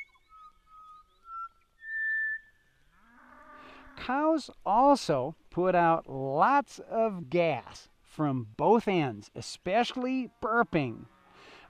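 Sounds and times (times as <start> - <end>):
butcher bird song: 0.0 - 2.8
speech: 4.0 - 11.6.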